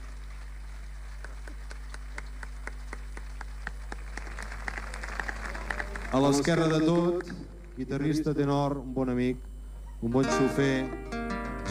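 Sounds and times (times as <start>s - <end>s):
audience applause: 0.0s - 7.9s
speech: 6.1s - 11.0s.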